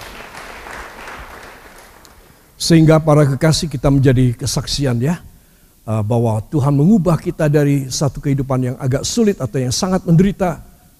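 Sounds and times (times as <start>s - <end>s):
audience applauding: 0.0s - 2.5s
speech: 2.6s - 10.7s.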